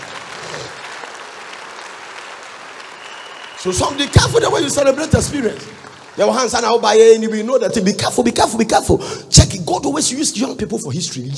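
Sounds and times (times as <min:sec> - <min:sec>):
audience clapping: 0:00.0 - 0:07.4
speech: 0:03.6 - 0:11.3.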